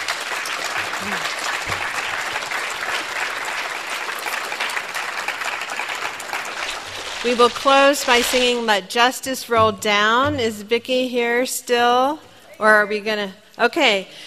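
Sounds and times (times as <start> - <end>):
audience applause: 0.0 - 8.3
speech: 1.0 - 1.8, 7.2 - 14.2.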